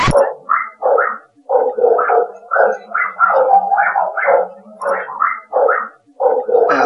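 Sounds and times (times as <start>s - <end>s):
dogs growling and barking: 0.1s - 6.8s.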